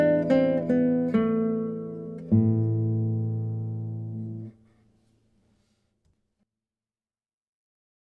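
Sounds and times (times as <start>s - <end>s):
guitar playing moderato: 0.0s - 4.7s.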